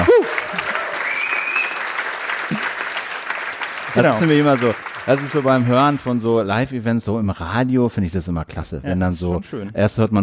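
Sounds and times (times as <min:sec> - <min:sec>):
live audience applause in a hall: 0:00.0 - 0:06.4
faint whistle: 0:01.0 - 0:01.8
speech: 0:04.0 - 0:10.2.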